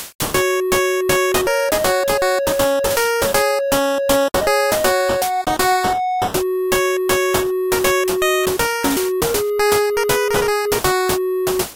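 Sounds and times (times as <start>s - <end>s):
dance song rehearsal: 0.4s - 11.6s.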